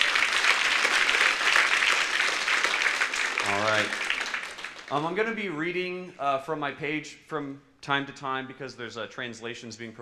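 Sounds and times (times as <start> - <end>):
audience applause: 0.0 - 5.3
speech: 4.9 - 10.0.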